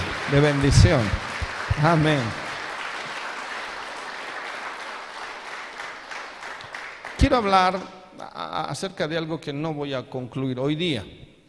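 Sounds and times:
audience applause: 0.0 - 7.3
speech: 0.3 - 2.4, 7.2 - 11.2.

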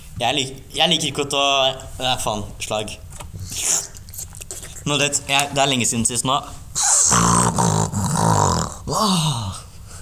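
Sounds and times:
speech: 0.2 - 3.8, 4.9 - 6.9, 8.9 - 9.6
person imitating snorting cocaine: 3.4 - 4.8, 6.8 - 9.9.

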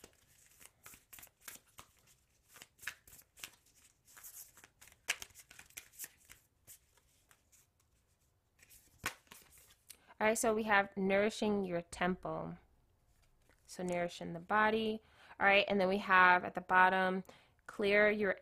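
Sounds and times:
deck of self-care cards shuffled: 0.0 - 8.0, 8.6 - 9.9
speech: 10.2 - 12.6, 13.8 - 18.3.

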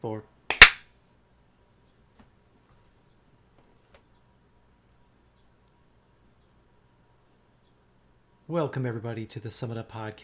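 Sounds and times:
speech: 0.0 - 0.3, 8.5 - 10.2
hand clap for audio sync: 0.5 - 0.8.

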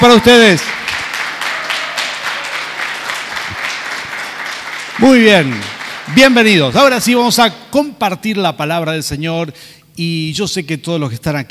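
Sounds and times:
speech: 0.0 - 0.8, 5.0 - 11.4
loud crowd applause: 0.0 - 6.8.

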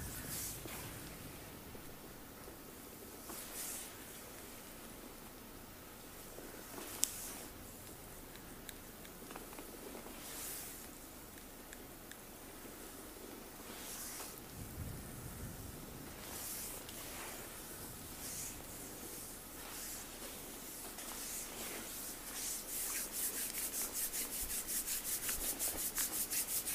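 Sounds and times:
sport massage rubbing and brushing strokes against skin: 0.0 - 1.2, 3.2 - 4.3, 6.5 - 7.6, 9.3 - 10.9, 13.2 - 14.4, 16.2 - 26.7
faint low hum: 0.0 - 26.7.

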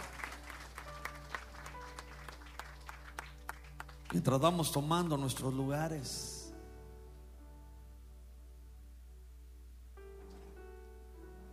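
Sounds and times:
audience applauding: 0.0 - 5.2
speech: 4.1 - 6.4.

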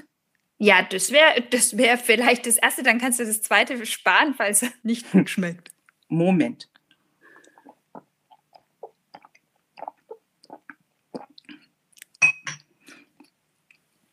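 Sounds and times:
speech: 0.6 - 6.7
taking several sips of a drink: 7.3 - 13.4.

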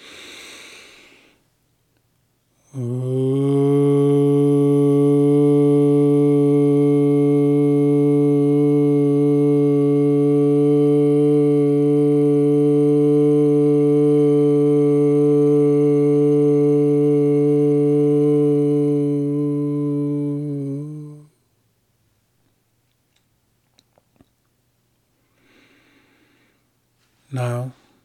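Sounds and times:
inhaled breath: 0.0 - 1.5, 25.2 - 26.7
person humming a low mmm tone: 2.6 - 21.4
speech: 2.7 - 3.1.

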